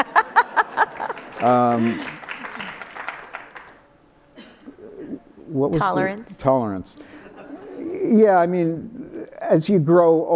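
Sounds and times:
laughter: 0:00.0 - 0:03.5, 0:07.0 - 0:09.4
audience applause and cheering: 0:00.0 - 0:03.9
sharp hand claps: 0:00.8 - 0:03.8
speech: 0:01.4 - 0:02.1, 0:05.6 - 0:07.2, 0:07.8 - 0:10.3.

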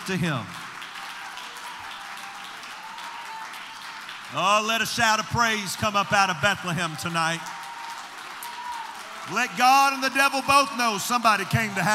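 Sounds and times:
audience clapping hands in praise: 0:00.0 - 0:11.9
speech: 0:00.1 - 0:00.6, 0:04.3 - 0:07.6, 0:09.3 - 0:11.9.

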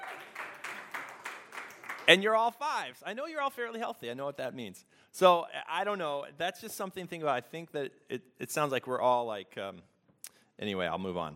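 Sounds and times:
round of applause from a small crowd: 0:00.0 - 0:02.5
speech: 0:02.1 - 0:09.9, 0:10.6 - 0:11.3.

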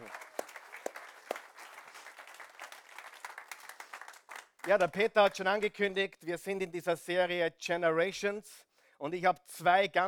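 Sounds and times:
audience applause: 0:00.0 - 0:04.9
speech: 0:04.7 - 0:10.0.

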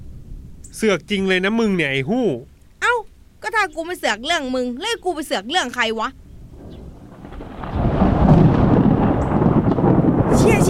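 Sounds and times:
speech: 0:00.7 - 0:02.5, 0:03.5 - 0:06.2
thunderclap from lightning strike: 0:06.4 - 0:10.6.

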